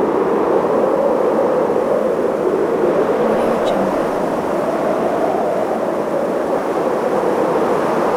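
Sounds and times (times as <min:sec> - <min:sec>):
strong gusty howling wind in a blizzard storm: 0:00.2 - 0:07.3.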